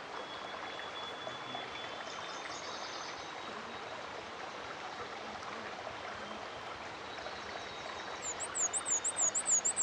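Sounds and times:
soft hiss: 0.0 - 9.8
black-and-white warbler singing: 8.1 - 9.8.

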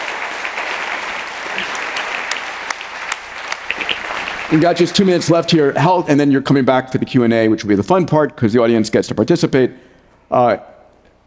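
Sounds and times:
audience applause: 0.0 - 5.6
speech: 4.5 - 10.7.

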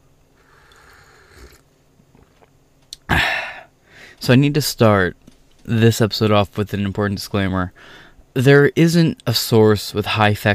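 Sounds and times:
person sipping coffee: 0.4 - 1.6
speech: 4.2 - 10.5.

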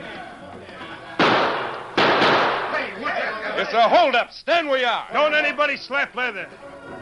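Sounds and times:
warning gunshots fired into the ceiling: 1.2 - 2.9
speech: 3.6 - 6.7.

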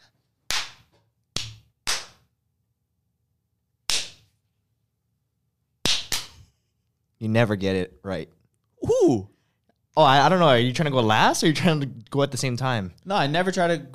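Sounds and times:
hand claps: 0.5 - 2.3, 3.9 - 4.3, 5.8 - 6.4
speech: 7.2 - 9.3, 10.0 - 13.9.

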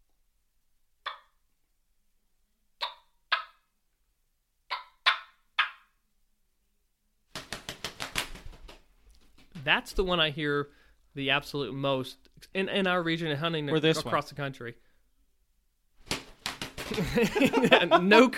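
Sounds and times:
imitated wingbeats of turkeys flying down: 7.4 - 9.6, 16.0 - 17.3
speech: 9.6 - 14.8, 16.9 - 18.3
laughter: 16.9 - 18.3.

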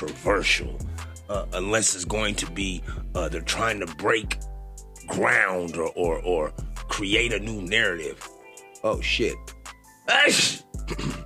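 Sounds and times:
speech: 0.0 - 4.5, 5.1 - 11.1
sneeze: 10.1 - 11.2.

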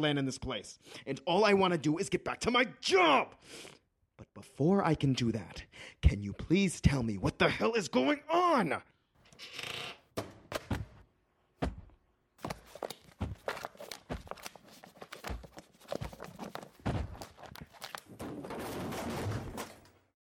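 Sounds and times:
speech: 0.0 - 10.3
shelf crashing over, scattering objects: 18.0 - 20.1.

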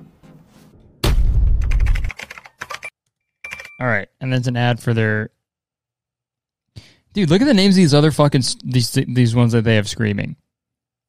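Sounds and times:
bowling pins strike sound effect: 0.8 - 1.7
speech: 3.8 - 5.4, 7.1 - 10.4.

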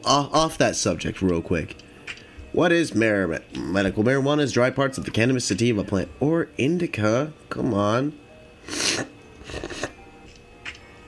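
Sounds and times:
speech: 0.0 - 9.7
person sniffling: 8.6 - 10.0.

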